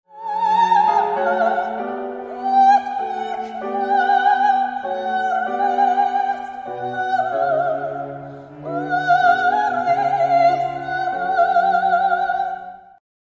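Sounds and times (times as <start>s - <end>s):
classical music: 0.1s - 13.0s.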